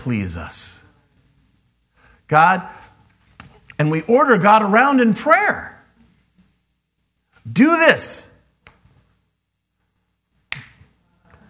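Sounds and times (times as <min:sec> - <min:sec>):
speech: 0:00.0 - 0:00.8, 0:02.3 - 0:02.9, 0:03.8 - 0:05.7, 0:07.4 - 0:08.3
finger snapping: 0:08.6 - 0:08.9, 0:10.5 - 0:10.9.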